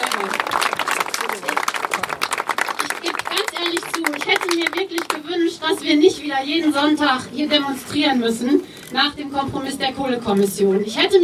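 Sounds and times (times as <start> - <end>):
crowd applause at a demonstration: 0.0 - 5.2
speech: 5.7 - 11.2.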